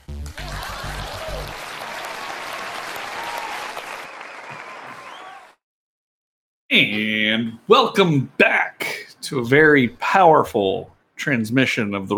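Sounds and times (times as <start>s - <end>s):
crowd applauding: 0.0s - 5.6s
faint cheers: 0.3s - 5.6s
speech: 6.7s - 12.1s.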